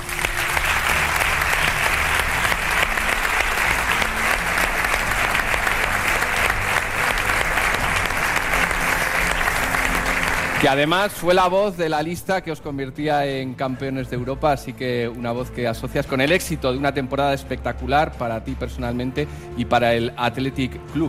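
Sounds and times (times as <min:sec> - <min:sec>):
huge stadium crowd applauding: 0:00.0 - 0:11.7
speech: 0:10.6 - 0:21.0.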